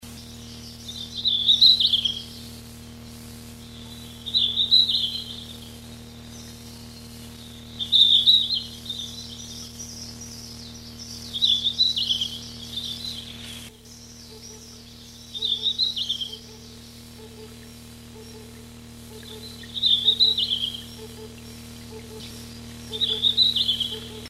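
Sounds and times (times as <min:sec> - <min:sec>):
low electrical hum: 0:00.0 - 0:24.2
red-flanked bluetail warbling: 0:00.7 - 0:02.4, 0:03.6 - 0:06.6, 0:07.5 - 0:24.2.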